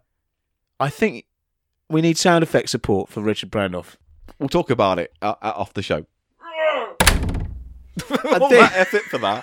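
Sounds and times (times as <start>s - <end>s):
speech: 0.8s - 1.3s, 1.9s - 6.1s, 8.0s - 9.4s
heavy door slam: 7.0s - 8.0s
laughter: 8.0s - 9.4s.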